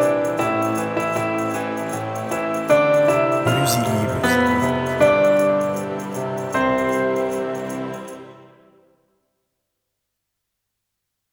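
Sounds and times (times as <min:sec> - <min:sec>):
Christmas carol: 0:00.1 - 0:08.6.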